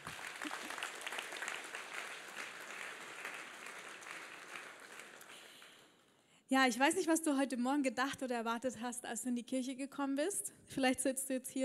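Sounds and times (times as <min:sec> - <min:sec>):
audience applause: 0:00.0 - 0:05.9
speech: 0:06.5 - 0:11.6.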